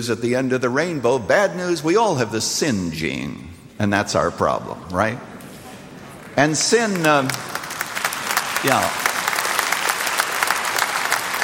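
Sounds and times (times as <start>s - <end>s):
speech: 0.0s - 5.3s, 6.4s - 7.6s, 8.6s - 9.0s
audience clapping during a sermon: 6.1s - 11.4s.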